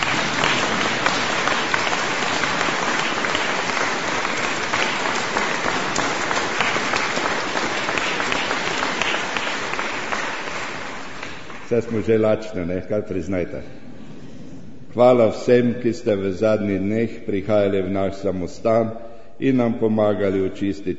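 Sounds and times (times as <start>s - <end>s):
audience applause: 0.0s - 12.1s
speech: 11.7s - 13.8s, 14.9s - 20.9s.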